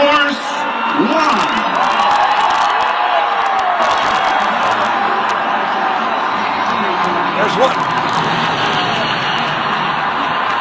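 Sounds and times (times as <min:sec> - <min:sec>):
crowd cheering: 0:00.0 - 0:10.6.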